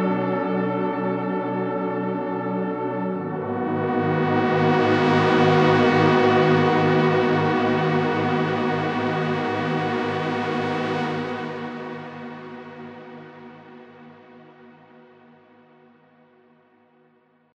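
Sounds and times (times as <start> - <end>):
dramatic chord: 0.2 - 12.4.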